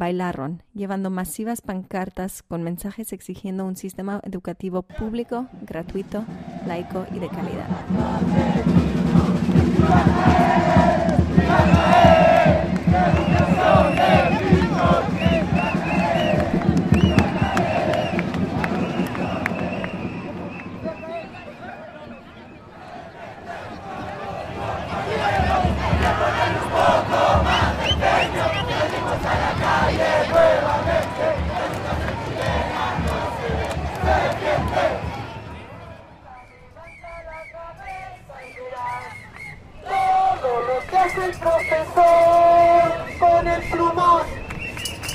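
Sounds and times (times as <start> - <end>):
speech: 0.0 - 13.3
protesters chanting slogans at an education march in central Santiago: 5.0 - 45.1.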